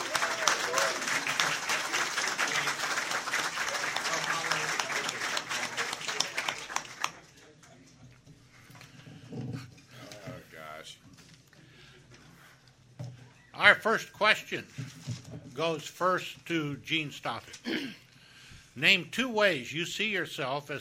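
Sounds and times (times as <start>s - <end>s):
audience applause: 0.0s - 7.2s
murmuring voices: 0.0s - 7.2s
speech: 13.7s - 14.9s, 15.6s - 18.0s, 18.8s - 20.8s.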